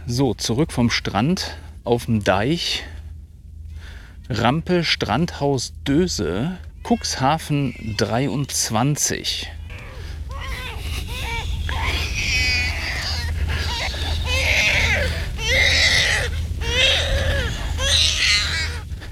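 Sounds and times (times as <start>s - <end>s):
steady low hum of noise: 0.0s - 19.1s
speech: 0.1s - 3.0s, 4.3s - 9.6s
infant in a carrier wailing: 6.8s - 9.0s, 9.6s - 18.9s.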